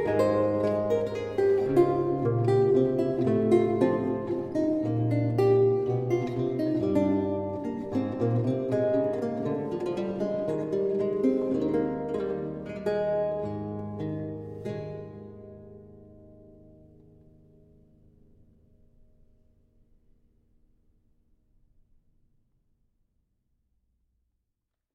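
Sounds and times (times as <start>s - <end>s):
lute courante: 0.0s - 17.1s.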